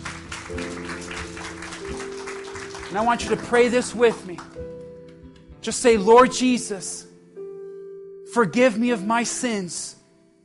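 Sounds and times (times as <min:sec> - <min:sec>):
church congregation clapping: 0:00.0 - 0:06.0
speech: 0:02.9 - 0:04.6, 0:05.6 - 0:07.1, 0:08.4 - 0:10.0.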